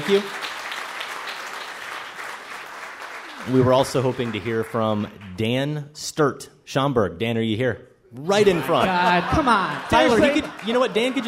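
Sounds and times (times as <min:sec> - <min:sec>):
round of applause: 0:00.0 - 0:05.4, 0:08.9 - 0:11.2
speech: 0:00.1 - 0:00.5, 0:03.4 - 0:11.2
laughter: 0:08.2 - 0:11.2.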